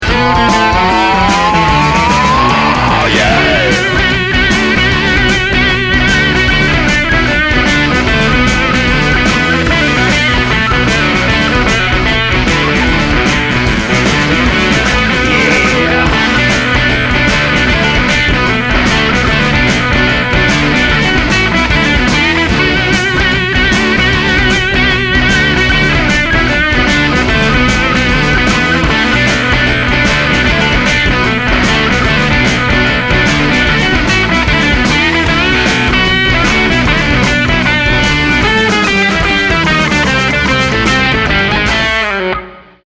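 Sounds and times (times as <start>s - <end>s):
music: 0.0s - 42.8s.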